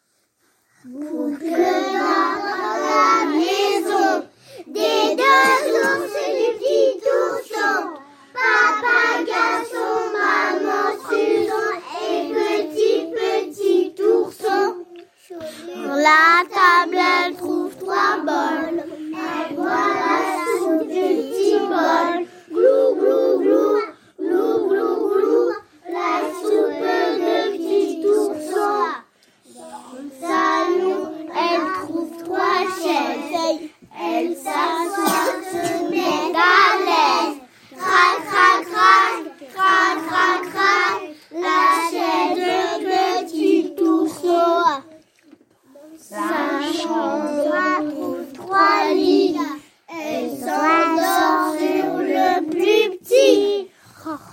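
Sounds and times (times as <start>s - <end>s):
voice: 0.9s - 45.0s, 45.8s - 54.3s.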